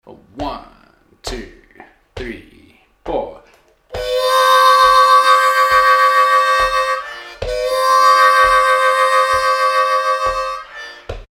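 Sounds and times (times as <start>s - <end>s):
harmonica lick: 4.0s - 11.1s.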